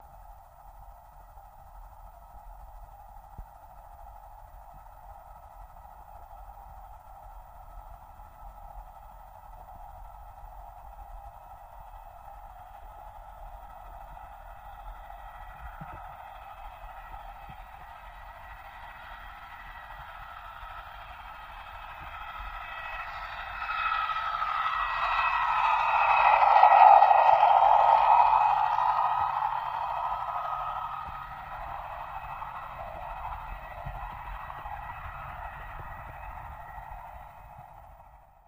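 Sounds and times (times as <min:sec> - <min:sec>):
torpedo jet passing by: 0:18.0 - 0:38.1.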